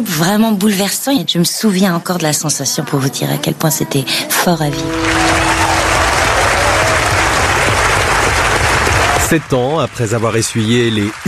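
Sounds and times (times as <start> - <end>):
speech: 0.0 - 5.7, 9.3 - 11.2
audience ovation applause: 4.6 - 11.2.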